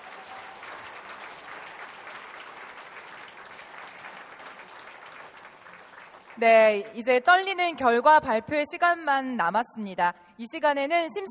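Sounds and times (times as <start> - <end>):
audience applause in a church after a sung hymn performance: 0.0 - 6.7
speech: 6.4 - 11.2.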